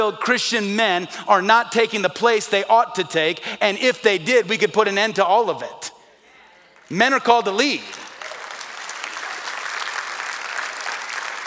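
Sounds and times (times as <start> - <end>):
speech: 0.0 - 6.0, 6.9 - 8.0
golf clap applause: 7.8 - 11.4.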